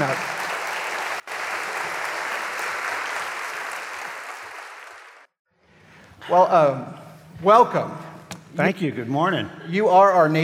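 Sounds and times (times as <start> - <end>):
church congregation at First Methodist Houston applauding a police chief: 0.0 - 5.3
speech: 6.3 - 10.4.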